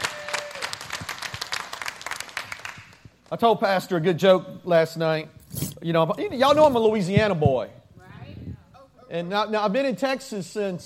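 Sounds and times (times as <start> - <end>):
audience applause: 0.0 - 3.0
speech: 3.3 - 7.8, 9.1 - 10.8.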